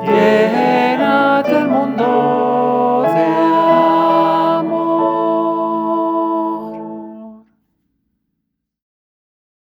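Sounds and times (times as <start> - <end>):
soprano voice: 0.0 - 7.4.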